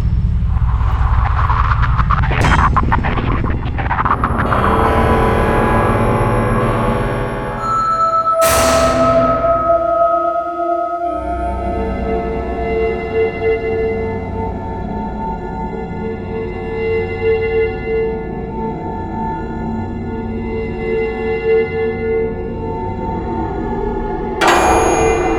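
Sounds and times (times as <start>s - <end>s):
scary ambience: 0.0s - 25.3s.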